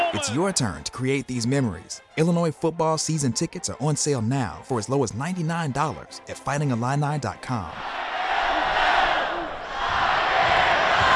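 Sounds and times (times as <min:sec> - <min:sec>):
football crowd cheering: 0:00.0 - 0:01.4, 0:07.7 - 0:11.1
speech: 0:00.2 - 0:08.1.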